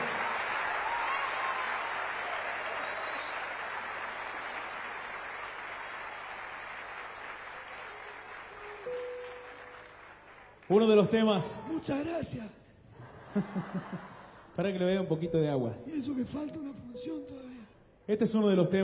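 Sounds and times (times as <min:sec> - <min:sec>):
audience applause: 0:00.0 - 0:12.1
speech: 0:10.7 - 0:12.6, 0:13.3 - 0:17.2, 0:18.1 - 0:18.8
laughter: 0:12.9 - 0:14.6.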